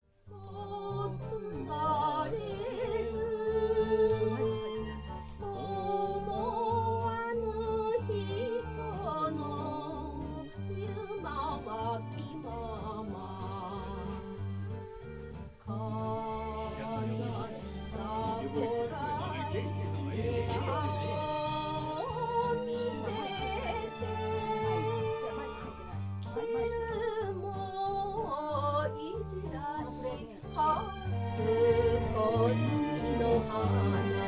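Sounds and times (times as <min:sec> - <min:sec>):
karaoke singing: 0:00.3 - 0:34.2.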